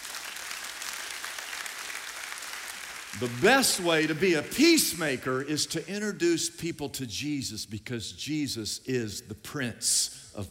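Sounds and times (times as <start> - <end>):
audience clapping: 0.0 - 5.6
speech: 3.1 - 10.4.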